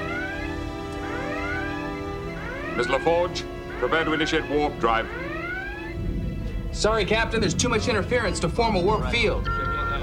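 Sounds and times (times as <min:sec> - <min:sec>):
starship red alert klaxon whooping: 0:00.0 - 0:06.0
speech: 0:02.8 - 0:05.3, 0:06.8 - 0:09.6.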